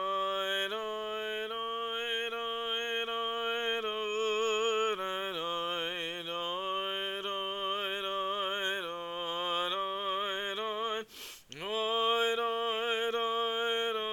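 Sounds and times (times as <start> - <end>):
cantor singing a nigun: 0.0 - 14.1.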